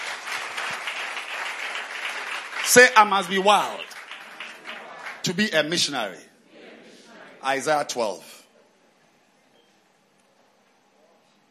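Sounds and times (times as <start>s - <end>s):
audience clapping hands: 0.0s - 6.0s
speech: 2.7s - 3.9s, 5.2s - 6.3s, 7.4s - 8.3s.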